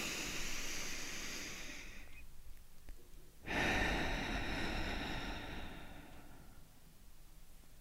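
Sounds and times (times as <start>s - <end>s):
deep breath in and out: 0.0s - 2.2s, 3.4s - 6.9s.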